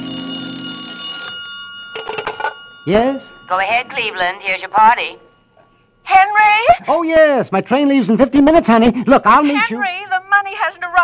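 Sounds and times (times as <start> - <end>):
old-fashioned telephone bell ringing: 0.0 - 5.5
speech: 2.8 - 5.2, 6.1 - 11.0.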